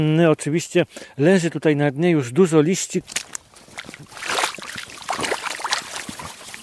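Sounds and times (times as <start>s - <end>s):
speech: 0.0s - 4.3s
rubber boot splashing through shallow pond water: 3.0s - 6.6s.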